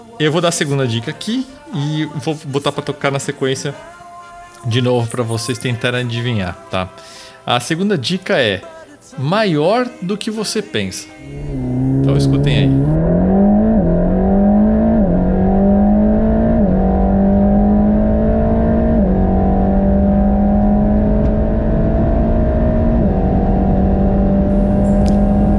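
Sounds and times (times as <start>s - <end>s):
speech: 0.2s - 4.0s, 4.6s - 13.4s
AMG M178 V8 engine revving: 11.2s - 25.5s.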